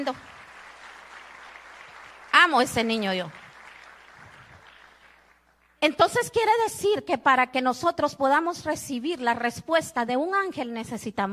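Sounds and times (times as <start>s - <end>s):
speech: 0.0s - 0.3s, 2.4s - 3.4s, 5.8s - 11.3s
audience applause: 0.0s - 5.8s.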